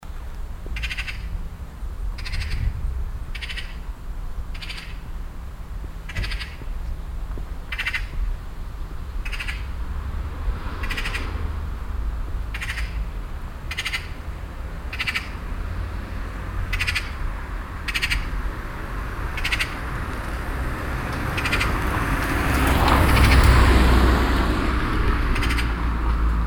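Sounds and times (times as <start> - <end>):
low rumble of wind and traffic: 0.0 - 26.4
Eurasian magpie chattering: 0.8 - 1.3, 2.2 - 2.7, 3.3 - 3.9, 4.5 - 5.0, 6.1 - 6.7, 7.7 - 8.2, 9.2 - 9.7, 12.5 - 13.0, 13.7 - 14.2, 14.9 - 15.4, 16.6 - 18.4, 19.3 - 19.8, 21.3 - 21.9, 25.3 - 25.8.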